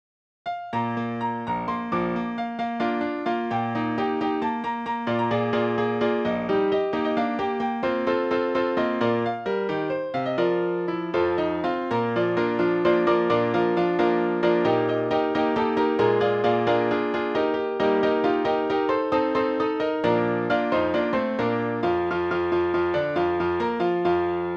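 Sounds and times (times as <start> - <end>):
piano concerto piano four hands: 0.5 - 24.5.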